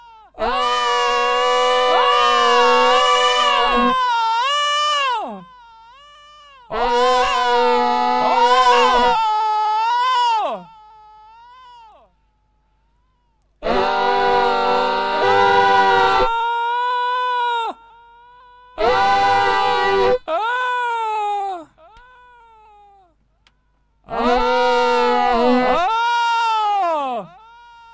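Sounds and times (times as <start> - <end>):
person screaming: 0.0 - 5.5, 6.7 - 10.8, 13.6 - 17.8, 18.7 - 23.1, 24.1 - 27.9.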